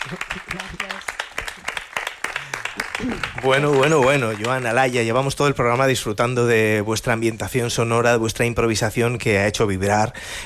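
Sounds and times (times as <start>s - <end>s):
audience clapping for two sound artisans on a programme: 0.0s - 6.3s
speech: 0.1s - 0.9s, 3.0s - 10.4s.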